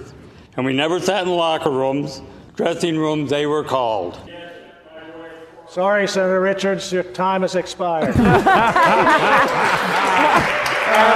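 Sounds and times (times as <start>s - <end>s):
speech: 0.6s - 4.4s, 5.7s - 11.1s
people talking and chuckling: 8.0s - 11.1s
senators clapping: 8.2s - 11.1s.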